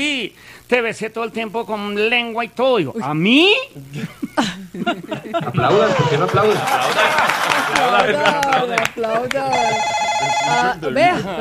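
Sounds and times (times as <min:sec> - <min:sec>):
speech: 0:00.0 - 0:11.3
laughter: 0:03.9 - 0:11.3
telephone ringing: 0:09.4 - 0:11.1.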